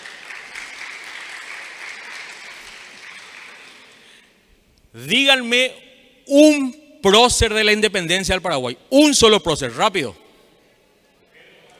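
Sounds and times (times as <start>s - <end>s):
audience applause: 0.0s - 4.2s
speech: 5.0s - 10.2s.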